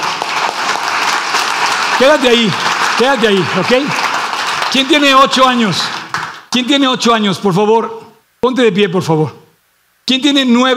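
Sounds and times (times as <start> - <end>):
audience applause: 0.0 - 6.5
speech: 2.0 - 4.1, 4.7 - 9.4, 10.1 - 10.7.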